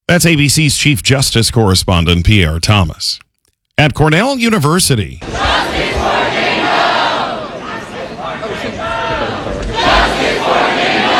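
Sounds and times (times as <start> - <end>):
speech: 0.1 - 3.2, 3.8 - 6.3
protesters shouting: 5.2 - 11.1.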